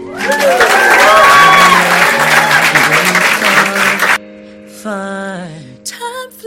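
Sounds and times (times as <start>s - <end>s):
audience clapping: 0.0s - 4.2s.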